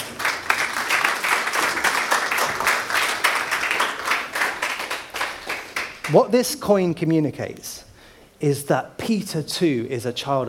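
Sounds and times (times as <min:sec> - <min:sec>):
audience applause: 0:00.0 - 0:06.3
speech: 0:06.1 - 0:10.4.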